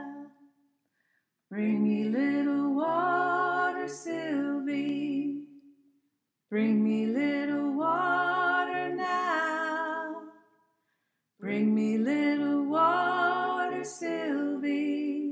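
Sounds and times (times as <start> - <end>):
alto choir voices: 1.5 - 5.5, 6.6 - 10.3, 11.4 - 15.3.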